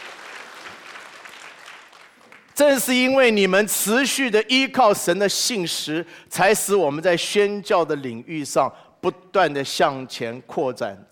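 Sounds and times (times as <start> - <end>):
congregation applauding in a church service: 0.0 - 3.2
speech: 2.6 - 11.1.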